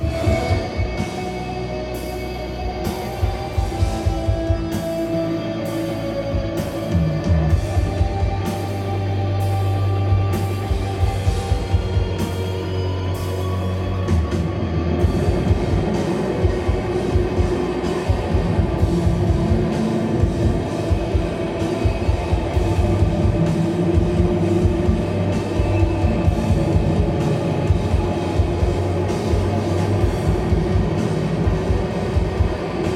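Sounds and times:
recording of a live band performance: 0.0s - 32.9s.

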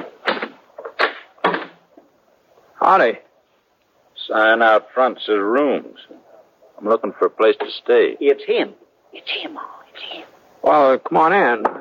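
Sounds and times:
door rattling and scraping: 0.0s - 2.0s
speech: 2.9s - 3.3s, 4.3s - 6.2s, 6.8s - 11.7s.

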